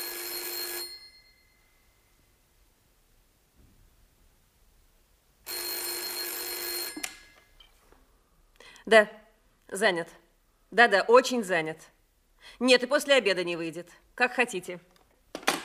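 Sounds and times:
telephone ringing: 0.0 - 1.6, 5.5 - 7.5
speech: 8.9 - 14.9.

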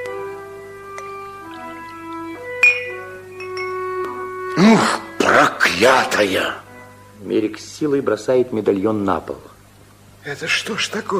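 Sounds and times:
glass clinking as a drink is poured: 1.9 - 4.1
speech: 5.8 - 6.6, 7.2 - 9.5, 10.2 - 11.1.

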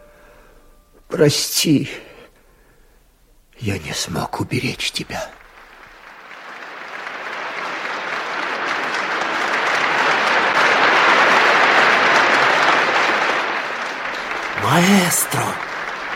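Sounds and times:
speech: 1.1 - 2.1, 3.6 - 5.4, 14.7 - 15.7
audience applause: 4.9 - 16.1.

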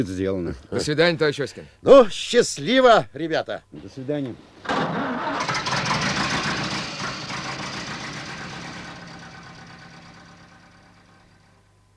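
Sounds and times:
speech: 0.0 - 5.4
vehicle engine starting and idling: 4.6 - 11.6.

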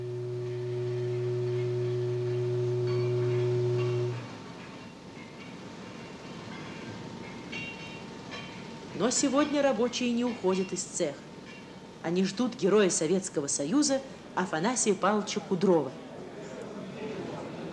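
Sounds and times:
prolonged factory whistle announcing lunch break: 0.0 - 4.5
speech: 9.0 - 11.3, 12.0 - 16.0.

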